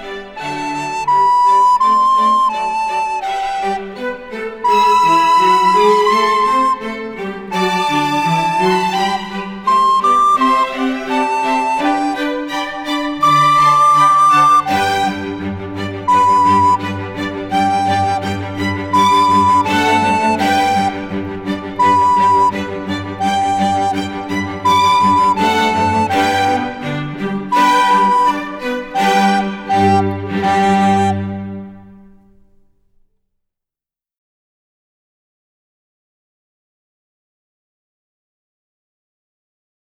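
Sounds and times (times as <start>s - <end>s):
slow recorder music: 0.0s - 26.9s, 27.5s - 32.5s.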